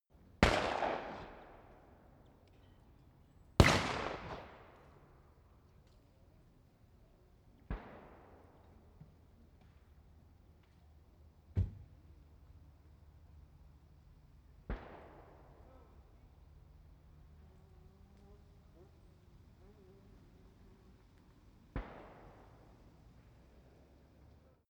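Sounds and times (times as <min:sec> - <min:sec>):
gunshots at a shooting range: 0:00.4 - 0:01.8, 0:03.6 - 0:05.0, 0:14.7 - 0:15.7, 0:21.7 - 0:22.9.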